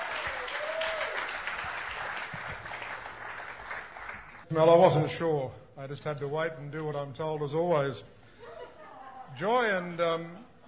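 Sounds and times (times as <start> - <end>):
audience applause: 0.0 - 4.4
speech: 4.5 - 8.2, 9.3 - 10.6.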